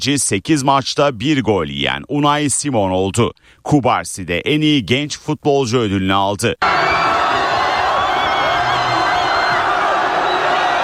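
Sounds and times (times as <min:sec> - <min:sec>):
speech: 0:00.0 - 0:07.1
Spanish football fans cheering at the final whistle of a World Cup win: 0:06.6 - 0:10.8.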